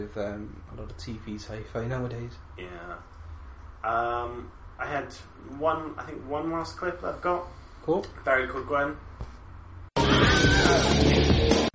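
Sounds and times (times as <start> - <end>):
speech: 0.0 - 3.2, 3.8 - 9.1, 10.4 - 11.7
Wilhelm scream stock scream effect: 10.0 - 11.6.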